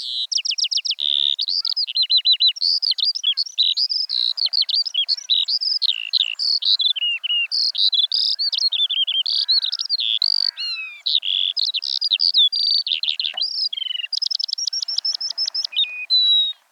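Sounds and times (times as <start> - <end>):
Eurasian skylark singing: 0.0 - 16.7.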